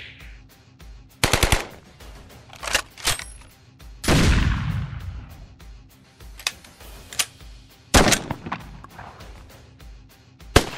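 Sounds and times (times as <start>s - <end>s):
guns: 1.2s - 1.9s, 4.0s - 5.4s, 7.9s - 9.5s, 10.6s - 10.7s.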